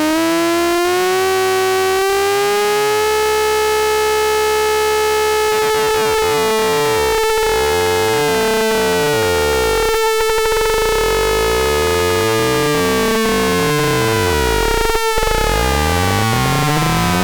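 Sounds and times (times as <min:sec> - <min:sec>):
VCO sawtooth synthesizer tone with FM: 0:00.2 - 0:17.2.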